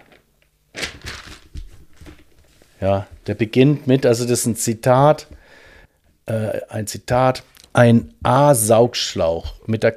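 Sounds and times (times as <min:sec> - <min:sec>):
book pages being leafed through: 0:00.8 - 0:03.4
speech: 0:02.8 - 0:05.4, 0:06.3 - 0:09.9.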